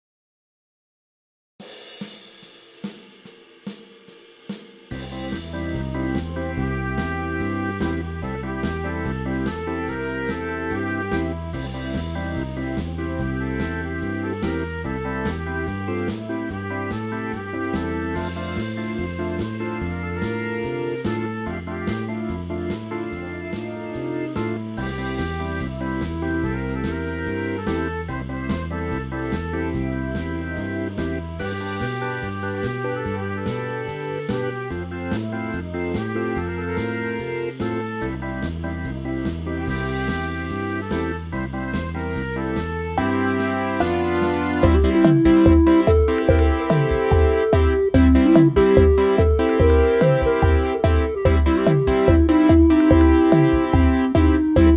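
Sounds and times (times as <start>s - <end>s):
MIDI blues music: 5.0s - 54.7s.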